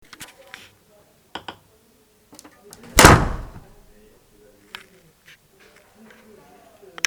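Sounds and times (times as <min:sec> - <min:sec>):
door slamming: 0:02.8 - 0:03.8.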